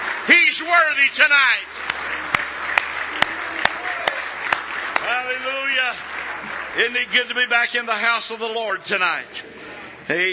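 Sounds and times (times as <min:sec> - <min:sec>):
audience hand clapping: 0:00.0 - 0:08.8
speech: 0:00.2 - 0:02.5, 0:05.2 - 0:10.3.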